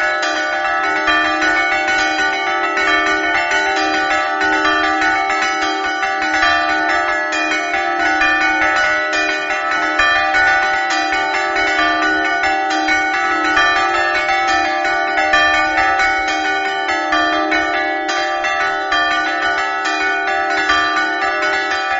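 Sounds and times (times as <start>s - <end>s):
bells ringing: 0.0s - 21.9s.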